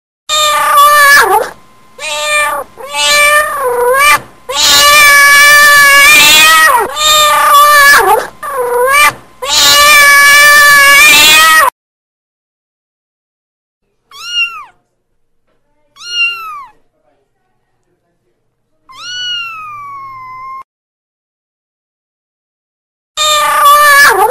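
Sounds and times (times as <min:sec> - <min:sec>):
cat meowing: 0:00.3 - 0:11.7, 0:14.1 - 0:14.8, 0:16.0 - 0:16.8, 0:18.9 - 0:20.6, 0:23.2 - 0:24.2.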